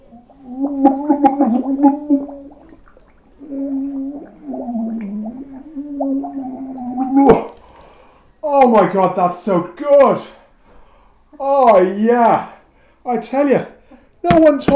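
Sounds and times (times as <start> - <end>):
face dunked in bowl of sparkling water: 0.0 - 8.8
speech: 0.8 - 2.2, 8.7 - 10.4, 11.7 - 14.7.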